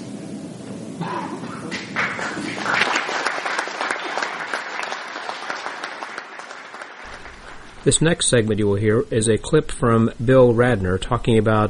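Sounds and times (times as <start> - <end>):
audience applause: 1.4 - 8.3
speech: 7.8 - 11.6.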